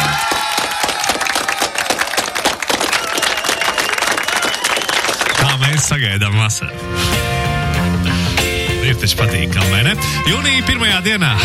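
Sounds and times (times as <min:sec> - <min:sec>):
scattered cheers: 0:00.0 - 0:05.6
crowd applause: 0:00.0 - 0:06.2
speech: 0:05.8 - 0:07.5, 0:08.8 - 0:11.4.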